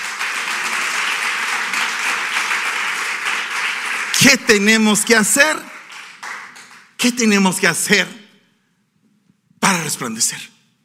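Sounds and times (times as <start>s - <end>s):
audience applauding: 0.0s - 7.0s
speech: 4.2s - 5.7s, 7.0s - 8.2s, 10.0s - 10.6s.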